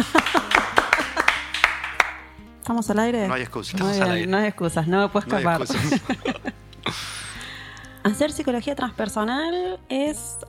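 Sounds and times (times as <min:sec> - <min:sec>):
speech: 0:00.0 - 0:00.4, 0:02.7 - 0:07.0, 0:08.0 - 0:10.4
laughter: 0:00.0 - 0:01.8, 0:05.3 - 0:07.6
live audience applause at a talk event: 0:00.0 - 0:02.2.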